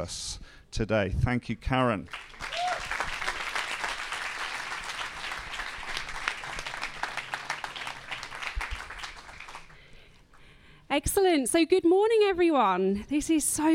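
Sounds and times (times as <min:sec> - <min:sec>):
speech: 0:00.0 - 0:02.4, 0:11.0 - 0:13.7
audience applause: 0:02.1 - 0:09.8.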